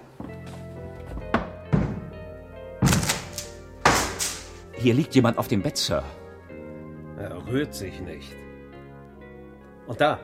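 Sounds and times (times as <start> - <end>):
door being broken open: 1.3 - 2.2, 2.8 - 4.6
speech: 4.8 - 6.2, 7.4 - 8.5, 9.9 - 10.2.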